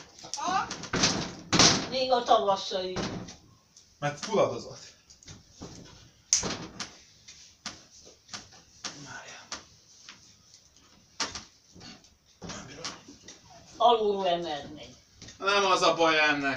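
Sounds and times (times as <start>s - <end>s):
door clunking and knocking as it is pushed and jostled: 0.5s - 2.0s, 2.9s - 3.4s
door banging shut: 0.5s - 2.1s, 2.9s - 3.4s, 6.4s - 6.9s
speech: 2.0s - 3.4s, 4.0s - 5.0s, 13.9s - 16.5s.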